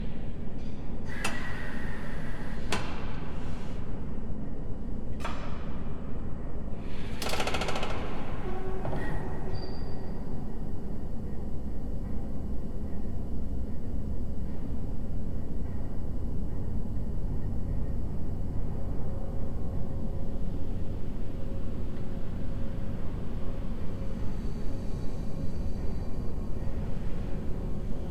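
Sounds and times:
large steam machines in a factory hall: 0:00.0 - 0:28.0.

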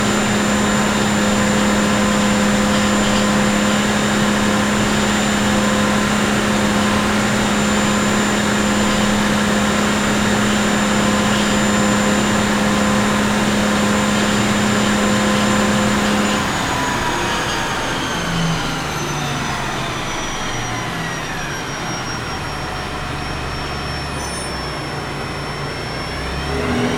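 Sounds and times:
Bandkanon 1C artillery vehicle engine starting, driving, reversing and stopping: 0:00.0 - 0:26.9.

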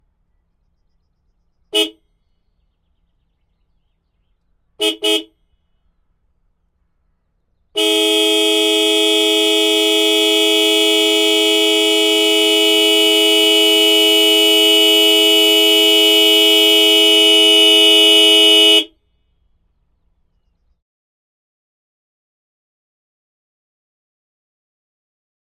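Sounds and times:
MAN Lion's Coach bus horn: 0:01.7 - 0:02.0, 0:04.8 - 0:05.5, 0:07.8 - 0:19.0.

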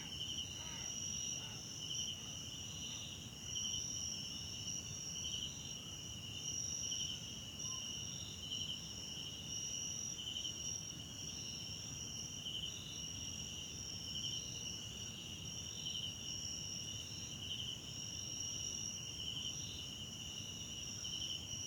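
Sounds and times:
crickets trilling in a dense chorus at night in a South African wetland park: 0:00.0 - 0:21.6.

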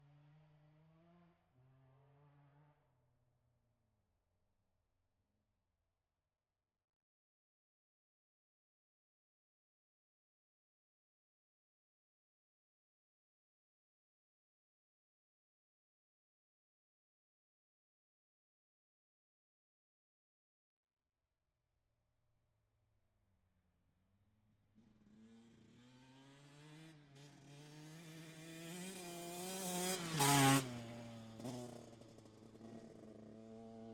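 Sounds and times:
TM 125 motorcycle passing by outside: 0:24.8 - 0:33.9.

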